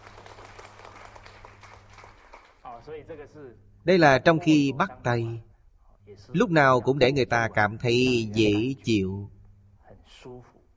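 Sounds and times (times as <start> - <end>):
audience applause: 0.0 - 2.6
low steady hum: 0.0 - 10.7
speech: 2.8 - 5.5, 6.1 - 9.4, 10.1 - 10.6.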